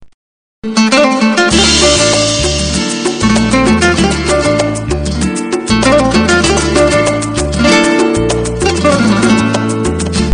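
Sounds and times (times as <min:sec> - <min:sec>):
guitar: 0:00.6 - 0:10.3.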